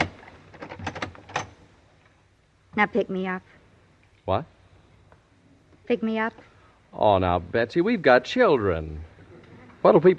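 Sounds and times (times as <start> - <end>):
door latch rattling as a door is opened: 0.0 - 1.6
speech: 2.8 - 3.6, 4.2 - 4.6, 5.9 - 9.1, 9.8 - 10.1.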